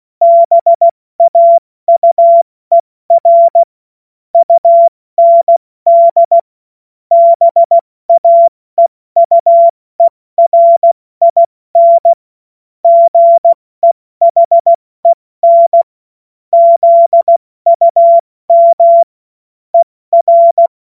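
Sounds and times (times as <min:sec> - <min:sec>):
CW Morse code beeps: 0:00.2 - 0:03.7, 0:04.4 - 0:06.4, 0:07.1 - 0:08.5, 0:09.2 - 0:12.2, 0:12.8 - 0:15.9, 0:16.6 - 0:19.1, 0:19.8 - 0:20.7.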